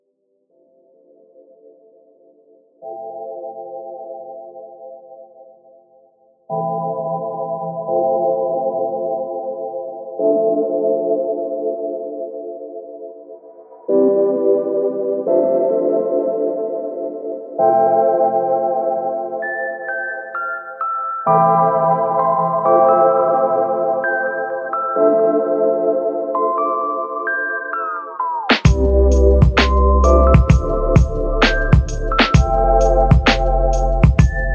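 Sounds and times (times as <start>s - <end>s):
chill music: 0.8s - 5.8s, 6.5s - 34.5s.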